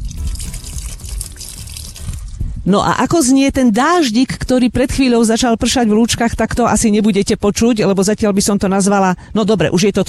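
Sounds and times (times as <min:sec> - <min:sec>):
water flowing from a mineral spring: 0:00.0 - 0:02.4
speech: 0:02.7 - 0:10.0.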